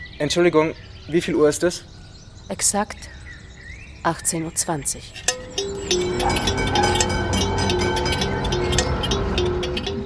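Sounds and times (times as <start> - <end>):
speech: 0.2 - 3.2, 4.0 - 7.0
tram running on rails: 5.3 - 10.0.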